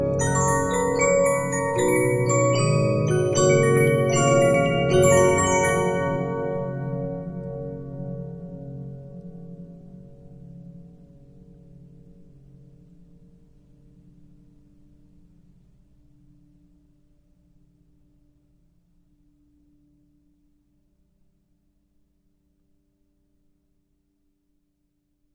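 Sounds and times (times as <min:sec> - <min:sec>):
15 inch disc music box playing: 0:00.0 - 0:06.9.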